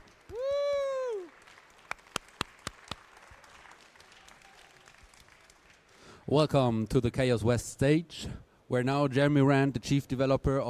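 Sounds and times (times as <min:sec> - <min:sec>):
audience applause: 0:00.0 - 0:06.1
speech: 0:06.3 - 0:10.6.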